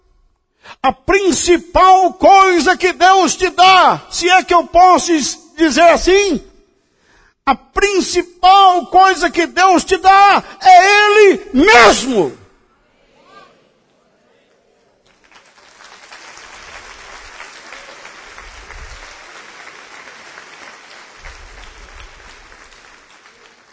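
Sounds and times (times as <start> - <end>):
speech: 0.8 - 6.5, 7.5 - 12.4
audience applause: 15.0 - 23.7.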